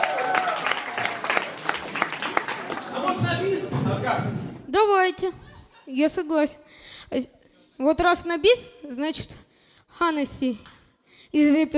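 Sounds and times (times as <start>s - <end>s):
audience applause at a live concert: 0.0s - 3.7s
speech: 4.0s - 11.7s.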